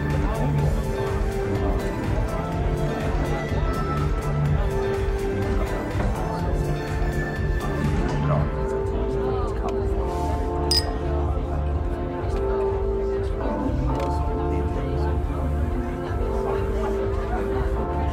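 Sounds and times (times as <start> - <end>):
murmur of many voices in a bar: 0.0 - 18.1
bright clink of glass or cutlery: 10.7 - 11.0.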